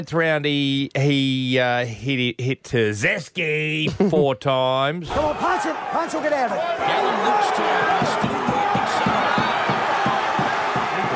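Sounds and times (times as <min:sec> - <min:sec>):
speech: 0:00.0 - 0:09.2
knocking on a door: 0:07.8 - 0:11.1.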